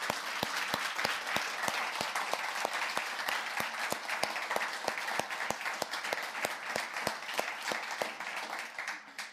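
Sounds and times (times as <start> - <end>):
audience applause: 0.0 - 9.3.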